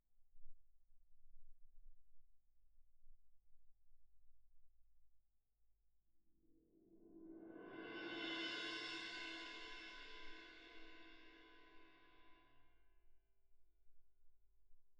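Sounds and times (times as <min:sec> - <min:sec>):
percussion: 0:06.8 - 0:12.7.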